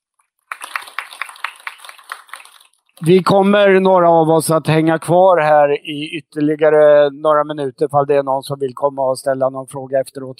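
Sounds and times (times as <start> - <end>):
audience applause: 0.5 - 2.8
speech: 3.0 - 10.3.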